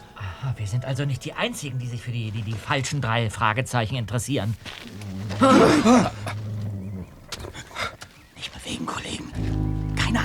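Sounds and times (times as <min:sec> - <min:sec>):
speech: 0:00.4 - 0:06.4
faint rustling: 0:04.2 - 0:10.1
dog growling: 0:04.9 - 0:08.0.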